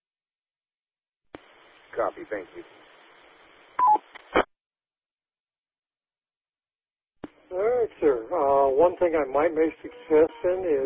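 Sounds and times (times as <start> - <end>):
speech: 2.0 - 2.9, 8.0 - 10.8
radio roger beep tone: 3.8 - 4.0, 9.8 - 10.8.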